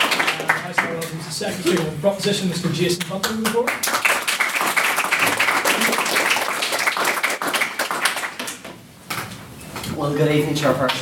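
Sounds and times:
audience applause for a maiden speaker at an evening debate: 0:00.0 - 0:01.0, 0:03.6 - 0:08.6
speech: 0:00.9 - 0:04.1, 0:10.0 - 0:11.0.

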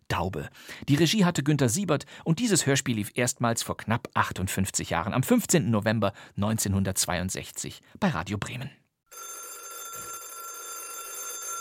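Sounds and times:
speech: 0:00.2 - 0:09.3
old telephone bell ringing: 0:09.1 - 0:11.5.

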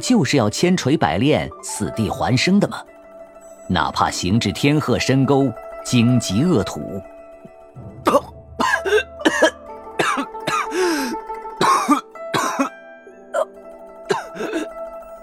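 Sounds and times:
speech: 0:00.0 - 0:02.9, 0:03.7 - 0:07.1
violent choking coughing fit: 0:08.0 - 0:12.7, 0:14.1 - 0:14.7
throat clearing: 0:08.1 - 0:10.7
strained wheezing gasps: 0:10.6 - 0:11.3, 0:14.2 - 0:14.7.

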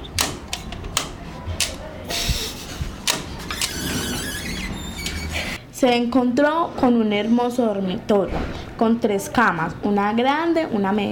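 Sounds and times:
door opening with clicks, rattles and a squeaky creak: 0:02.1 - 0:05.6
speech: 0:05.8 - 0:11.1.

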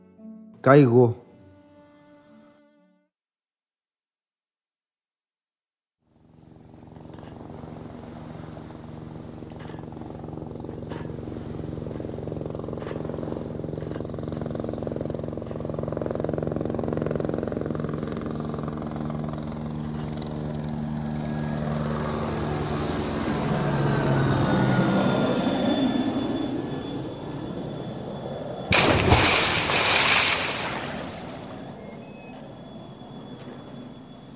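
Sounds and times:
speech: 0:00.6 - 0:01.2
helicopter rotor: 0:06.1 - 0:34.3.

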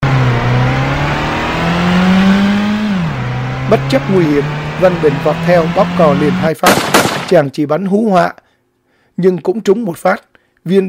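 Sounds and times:
jeep engine revving, speeding away: 0:00.0 - 0:07.3
speech: 0:03.7 - 0:08.4, 0:09.2 - 0:10.8.

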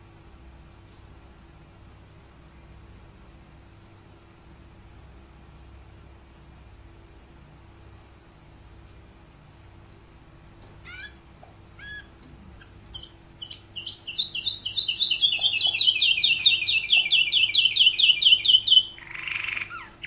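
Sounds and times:
canary giving sharp chirps: 0:10.8 - 0:20.0.

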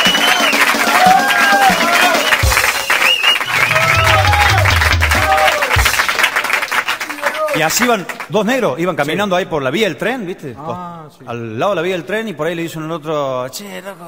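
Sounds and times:
audience applause: 0:00.0 - 0:08.3
speech: 0:07.6 - 0:14.0.

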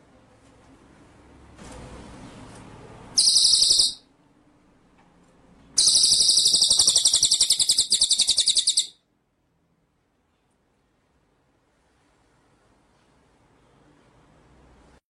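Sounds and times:
white-rumped shama song: 0:03.2 - 0:04.1, 0:05.8 - 0:09.0.

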